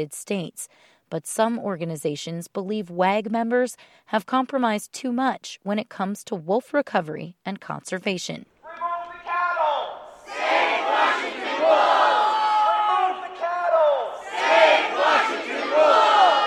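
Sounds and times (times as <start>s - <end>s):
speech: 0.0s - 8.5s
protest crowd chanting: 8.7s - 16.4s.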